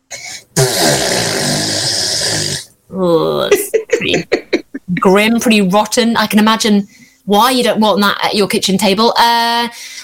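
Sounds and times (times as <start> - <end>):
voice imitating a fart: 0.1 - 2.7
speech: 4.0 - 10.0.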